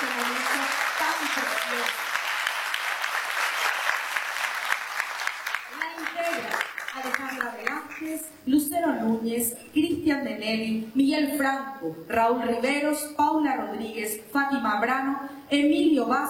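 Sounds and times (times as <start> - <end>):
crowd applause for a band: 0.0 - 8.0
speech: 8.2 - 16.2.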